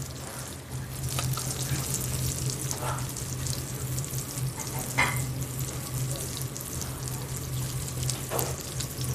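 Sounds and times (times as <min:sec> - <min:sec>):
rosemary crackling as it fries in butter: 0:00.0 - 0:09.1.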